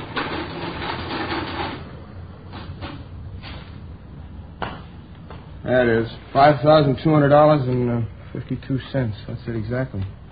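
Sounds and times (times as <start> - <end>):
mechanical adding machine clattering and whirring: 0.0 - 1.8
low hum: 0.0 - 10.3
speech: 5.7 - 10.2.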